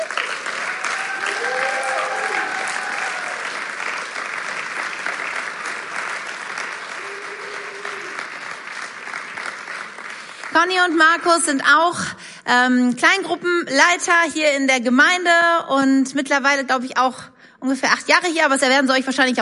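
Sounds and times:
audience applause: 0.0s - 11.3s
speech: 10.6s - 19.4s.

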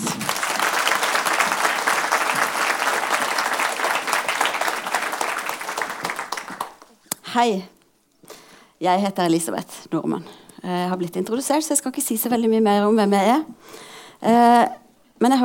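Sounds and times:
audience applause: 0.0s - 7.0s
speech: 7.4s - 7.8s, 8.8s - 15.4s.

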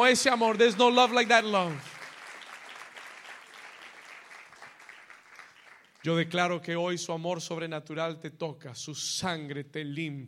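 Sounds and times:
speech: 0.0s - 1.9s, 6.0s - 10.2s
audience applauding: 0.0s - 6.3s.

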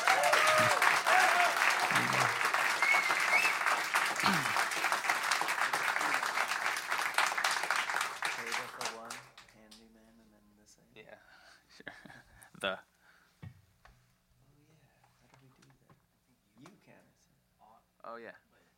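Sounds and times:
audience clapping: 0.0s - 9.8s.

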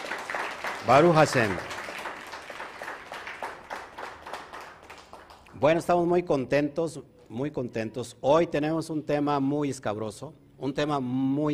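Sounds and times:
audience applause: 0.0s - 5.6s
speech: 0.8s - 1.7s, 5.6s - 11.5s.

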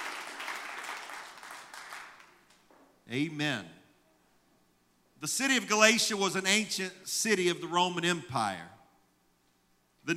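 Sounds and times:
audience hand clapping: 0.0s - 2.6s
speech: 3.1s - 3.8s, 5.2s - 8.8s.

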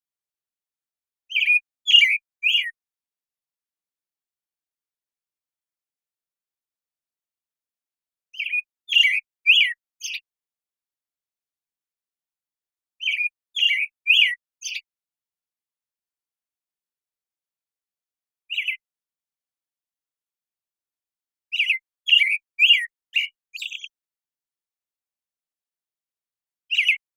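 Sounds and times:
American Robin singing caroling whistled phrases: 1.3s - 2.8s, 8.4s - 10.2s, 13.0s - 14.9s, 18.5s - 18.8s, 21.5s - 24.0s, 26.7s - 27.0s.

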